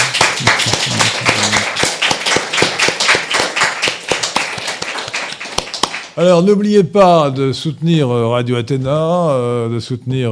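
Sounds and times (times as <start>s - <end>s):
laughter: 0.0s - 1.7s
audience applauding the speaker: 0.0s - 6.2s
speech: 6.2s - 10.3s.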